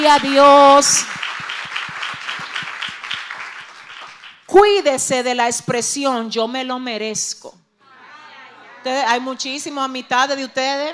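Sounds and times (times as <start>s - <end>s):
speech: 0.0s - 1.2s, 4.5s - 7.6s, 8.8s - 10.9s
audience applause: 0.2s - 4.4s.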